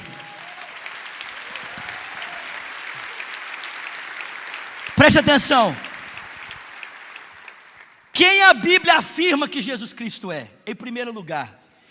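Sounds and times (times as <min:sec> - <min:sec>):
audience applause: 0:00.0 - 0:08.1
speech: 0:05.0 - 0:05.9, 0:08.2 - 0:11.6.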